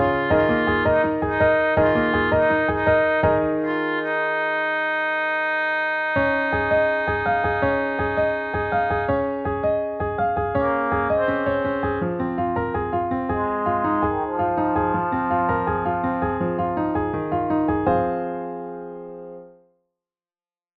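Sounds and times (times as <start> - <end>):
piano melody: 0.0 - 19.6.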